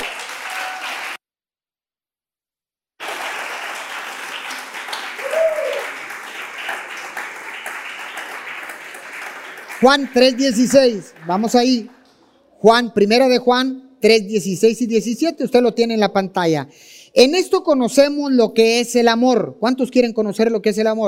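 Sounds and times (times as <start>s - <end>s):
audience applauding loudly: 0.0s - 1.2s, 3.0s - 12.3s
speech: 9.8s - 12.0s, 12.6s - 21.0s.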